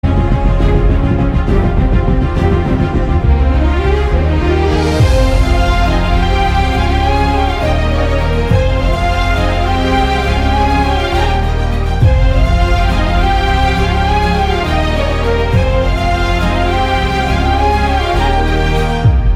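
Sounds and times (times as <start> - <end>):
background music ringtone: 0.0 - 19.3.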